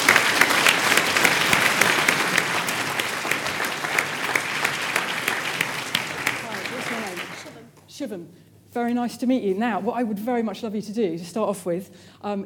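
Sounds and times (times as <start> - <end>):
audience applause: 0.0 - 7.6
speech: 8.0 - 12.4.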